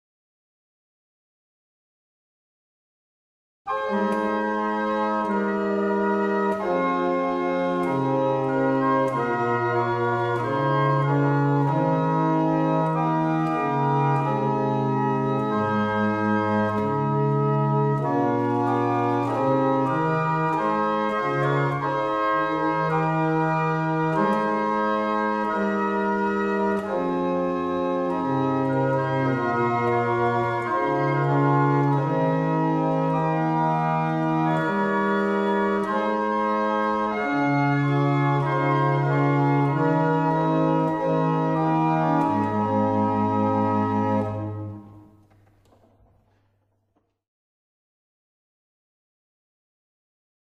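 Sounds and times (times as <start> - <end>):
barrel organs: 3.7 - 45.8.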